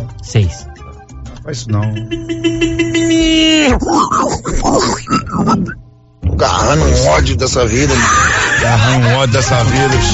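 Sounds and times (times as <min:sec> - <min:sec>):
speech: 0:00.1 - 0:00.7, 0:01.5 - 0:05.8, 0:06.4 - 0:10.1
pigs squealing as a van runs over them: 0:03.4 - 0:05.8, 0:07.7 - 0:08.8
laughter: 0:07.7 - 0:09.9.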